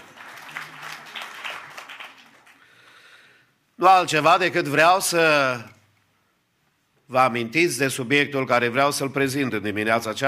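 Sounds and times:
audience applause: 0:00.0 - 0:02.9
speech: 0:03.8 - 0:05.8, 0:07.1 - 0:10.2.

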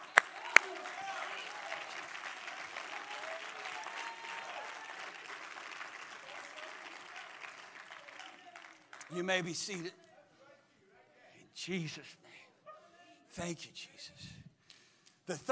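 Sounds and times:
audience applause: 0:00.0 - 0:09.5
speech: 0:09.1 - 0:10.0, 0:11.6 - 0:12.3, 0:13.4 - 0:14.4, 0:15.3 - 0:15.5.

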